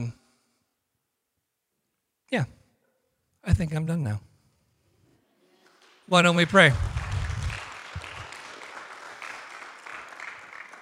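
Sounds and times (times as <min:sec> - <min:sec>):
speech: 0:02.3 - 0:02.6, 0:03.4 - 0:04.3, 0:06.1 - 0:07.0
audience clapping: 0:05.5 - 0:10.8.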